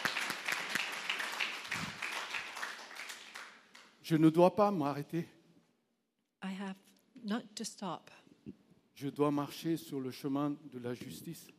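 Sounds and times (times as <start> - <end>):
audience applause for two people: 0.0 - 3.9
speech: 4.1 - 5.4, 7.3 - 8.2, 9.0 - 11.5.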